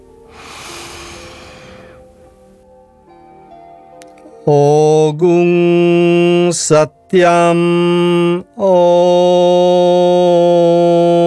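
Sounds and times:
deep inhalation before a mantra repetition in chakra meditation: 0:00.3 - 0:02.4
loud steady harmonic tone: 0:00.3 - 0:02.6
speech: 0:04.4 - 0:11.2.

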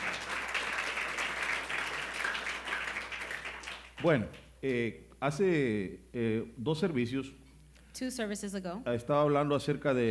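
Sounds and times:
applause: 0:00.0 - 0:04.5
speech: 0:04.0 - 0:07.4, 0:08.0 - 0:10.0.

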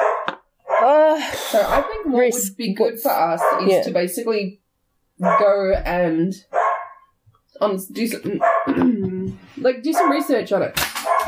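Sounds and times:
dog barking and yipping: 0:00.0 - 0:00.9, 0:01.7 - 0:02.0, 0:03.4 - 0:03.7, 0:05.2 - 0:05.5, 0:06.5 - 0:07.1, 0:08.4 - 0:08.7, 0:09.9 - 0:10.3, 0:11.0 - 0:11.2
speech: 0:01.2 - 0:04.6, 0:05.2 - 0:06.6, 0:07.6 - 0:10.9.

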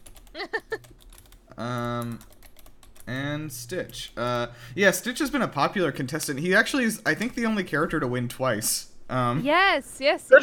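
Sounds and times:
typing a game title on a computer keyboard: 0:00.0 - 0:04.1
speech: 0:01.6 - 0:02.3, 0:03.1 - 0:10.4.

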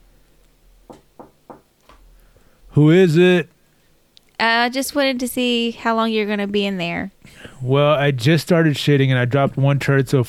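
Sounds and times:
knocking on a bathroom door: 0:00.9 - 0:01.7
speech: 0:02.8 - 0:03.5, 0:04.4 - 0:10.2.

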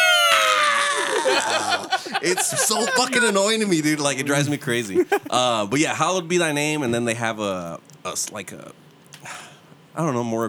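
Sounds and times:
voice imitating eagle-like scream: 0:00.0 - 0:02.1
laughter: 0:00.0 - 0:05.8
speech: 0:01.3 - 0:09.4, 0:10.0 - 0:10.4.

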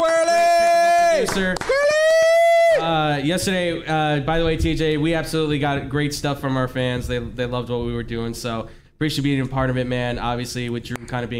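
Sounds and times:
round of applause and cheering: 0:00.0 - 0:02.6
speech: 0:01.2 - 0:01.9, 0:03.1 - 0:11.3.

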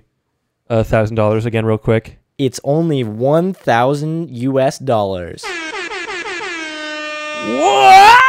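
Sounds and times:
speech: 0:00.7 - 0:05.6, 0:07.4 - 0:08.1
air horn sound effect: 0:05.4 - 0:07.6.

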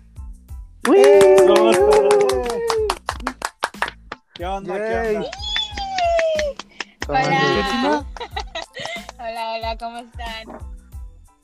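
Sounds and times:
audience clapping: 0:00.8 - 0:09.3
voices cheering and shouting: 0:00.9 - 0:03.0, 0:04.9 - 0:08.1
laughter: 0:01.2 - 0:03.4, 0:05.0 - 0:09.2
speech: 0:04.4 - 0:05.4, 0:07.1 - 0:08.2, 0:09.7 - 0:10.7.

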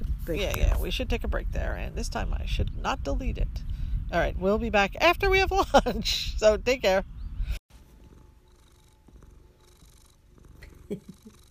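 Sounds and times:
speech: 0:00.2 - 0:07.6, 0:10.9 - 0:11.2
cat purring: 0:07.9 - 0:11.4.

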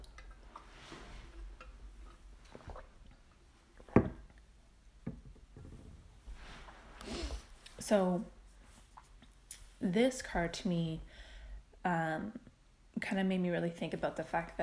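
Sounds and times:
sipping water from a glass: 0:00.0 - 0:04.4
speech: 0:07.9 - 0:08.4, 0:09.8 - 0:11.1, 0:11.8 - 0:12.4, 0:13.0 - 0:14.6.

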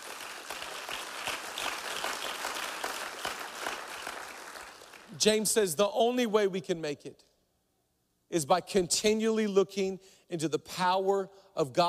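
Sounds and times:
audience clapping hands: 0:00.0 - 0:05.2
speech: 0:05.2 - 0:07.3, 0:08.3 - 0:11.8.

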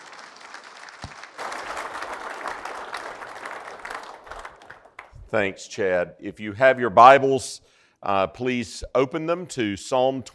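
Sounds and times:
congregation applause welcoming a preacher at a Sunday church service: 0:00.0 - 0:05.2
speech: 0:05.3 - 0:10.3.

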